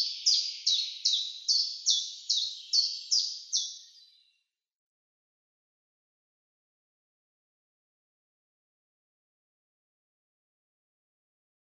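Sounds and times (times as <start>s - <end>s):
common chiffchaff song: 0.0s - 4.5s.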